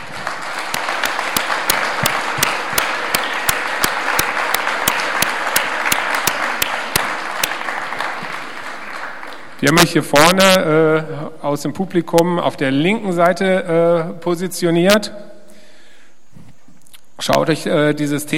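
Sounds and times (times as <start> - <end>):
audience applause: 0.0 - 9.8
speech: 9.6 - 15.2, 17.3 - 18.3.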